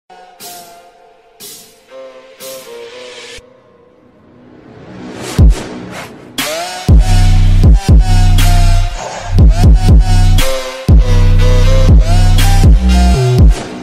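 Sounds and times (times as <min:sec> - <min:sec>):
bass boost for headphones: 0:06.9 - 0:13.6.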